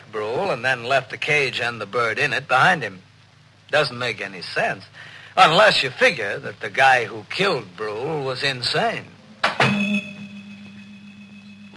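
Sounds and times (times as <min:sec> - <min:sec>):
speech: 0:00.1 - 0:03.1, 0:03.7 - 0:09.2
low resonant hum: 0:09.2 - 0:11.7
door slamming shut: 0:09.4 - 0:10.0.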